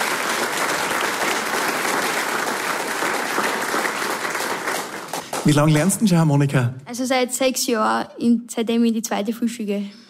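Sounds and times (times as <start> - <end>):
audience applause: 0.0 - 6.2
speech: 5.4 - 10.0.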